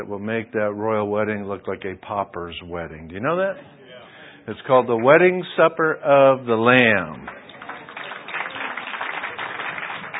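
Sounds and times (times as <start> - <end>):
speech: 0.0 - 3.8, 4.5 - 7.4
scattered audience clapping: 7.0 - 10.1.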